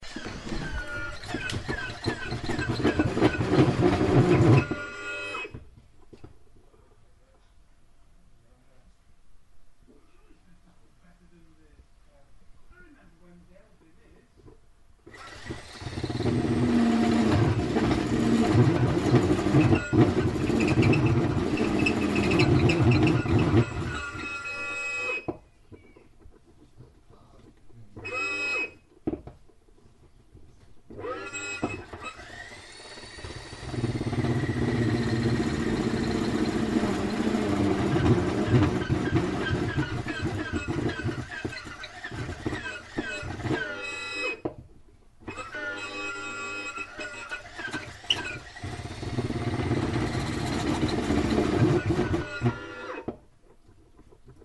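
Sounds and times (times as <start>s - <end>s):
desperate sounding hammer drill: 0.0s - 5.6s, 15.1s - 25.3s, 28.0s - 28.8s, 30.9s - 44.5s, 45.3s - 53.1s.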